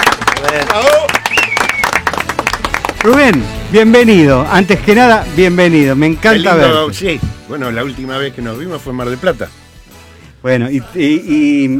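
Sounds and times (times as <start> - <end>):
applause: 0.0 - 3.6
speech: 0.4 - 1.2, 3.0 - 9.6, 10.4 - 11.7.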